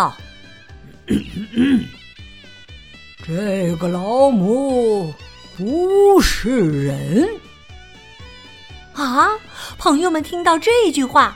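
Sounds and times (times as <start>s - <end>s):
speech: 0.0s - 0.2s, 1.1s - 2.0s, 3.2s - 7.4s, 9.0s - 11.3s
throat clearing: 0.9s - 2.0s.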